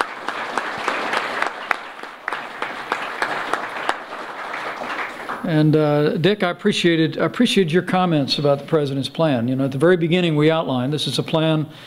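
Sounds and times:
audience applause: 0:00.0 - 0:05.7
speech: 0:05.5 - 0:11.8.

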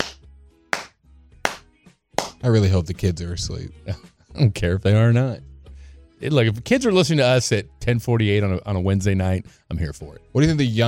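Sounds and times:
hand clapping: 0:00.0 - 0:02.5
speech: 0:02.4 - 0:05.5, 0:06.2 - 0:10.8.

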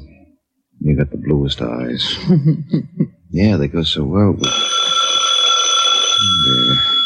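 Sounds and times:
speech: 0:01.0 - 0:04.8
telephone ringing: 0:04.4 - 0:07.0.

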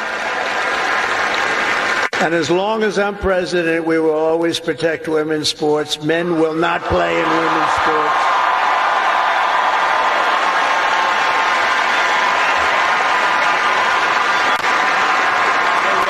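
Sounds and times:
college students applauding: 0:00.0 - 0:02.6, 0:06.8 - 0:16.0
speech: 0:02.2 - 0:08.4.

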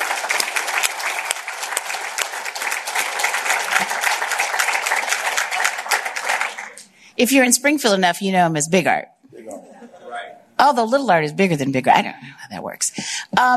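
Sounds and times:
audience applause: 0:00.0 - 0:06.9
speech: 0:07.2 - 0:09.1, 0:10.6 - 0:12.3, 0:12.9 - 0:13.5.

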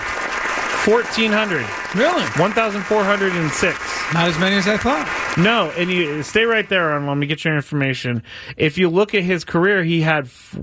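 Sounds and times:
applause sound effect: 0:00.0 - 0:07.2
speech: 0:00.8 - 0:10.6.

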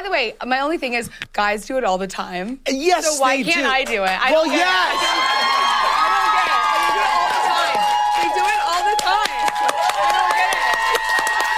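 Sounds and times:
speech: 0:00.0 - 0:05.7
studio audience standing ovation clapping and cheering: 0:03.7 - 0:11.5.

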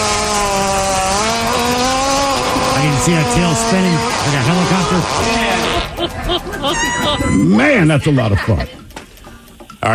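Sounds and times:
hippopotamus fart: 0:00.3 - 0:06.0
speech: 0:03.0 - 0:08.8
laughter: 0:04.4 - 0:08.8.

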